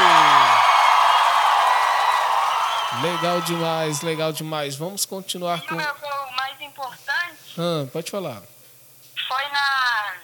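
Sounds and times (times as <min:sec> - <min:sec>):
applause: 0:00.0 - 0:04.2
speech: 0:03.1 - 0:06.2, 0:06.8 - 0:08.6.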